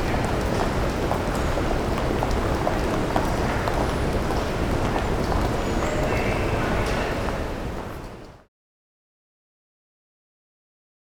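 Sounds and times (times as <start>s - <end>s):
railway station ambience: 0.0s - 8.5s.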